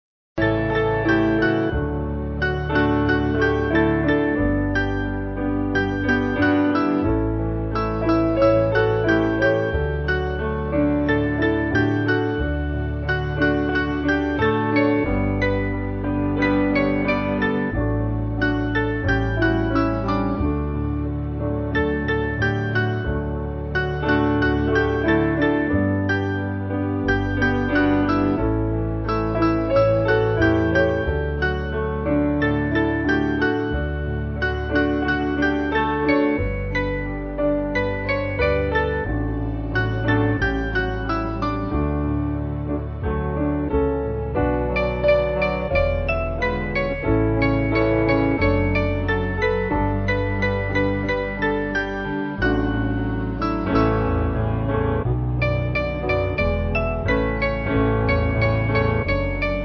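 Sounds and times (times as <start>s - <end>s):
piano: 0.0s - 59.6s.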